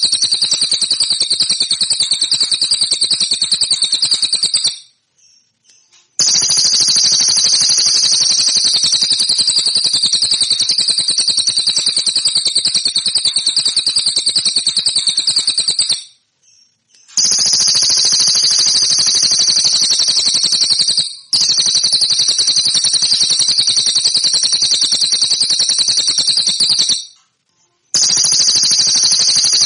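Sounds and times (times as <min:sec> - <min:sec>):
song: 0:00.0 - 0:05.0, 0:06.2 - 0:16.2, 0:17.0 - 0:27.2, 0:28.0 - 0:29.6.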